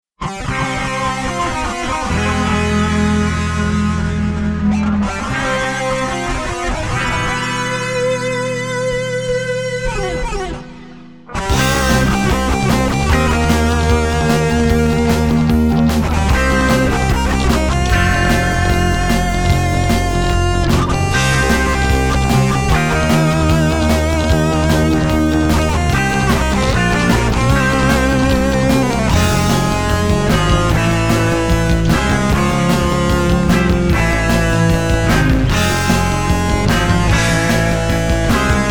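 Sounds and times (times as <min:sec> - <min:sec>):
instrumental music: 0:01.1 - 0:38.6.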